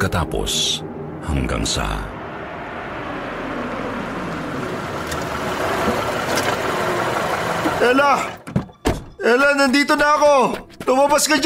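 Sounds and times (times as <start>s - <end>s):
speech: 0.0s - 2.2s, 7.8s - 8.4s, 9.2s - 11.4s
car pulling up: 0.0s - 8.8s.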